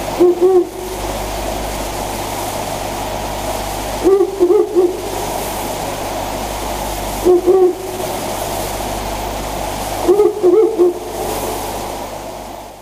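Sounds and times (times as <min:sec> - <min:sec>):
owl hooting: 0:00.0 - 0:01.0, 0:04.0 - 0:05.5, 0:07.2 - 0:08.2, 0:10.0 - 0:11.8
background roar and hum: 0:00.0 - 0:12.8.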